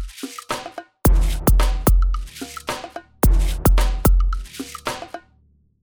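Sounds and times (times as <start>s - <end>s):
hip hop music: 1.1s - 5.0s.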